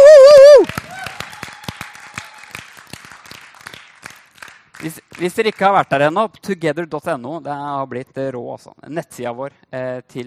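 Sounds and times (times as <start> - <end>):
audience applause: 0.4 - 5.0
speech: 4.8 - 10.2.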